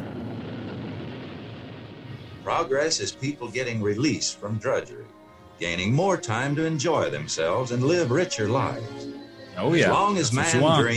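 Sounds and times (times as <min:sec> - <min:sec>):
rocket roaring: 0:00.0 - 0:03.8
speech: 0:02.4 - 0:10.9.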